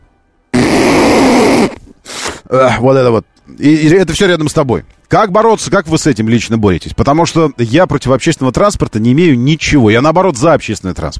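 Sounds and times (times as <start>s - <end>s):
voice imitating nose blowing: 0.5s - 2.5s
speech: 2.5s - 11.1s.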